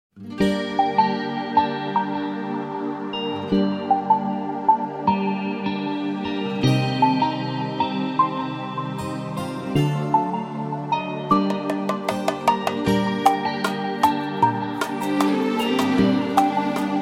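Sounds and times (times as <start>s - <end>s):
slow music: 0.2s - 17.0s.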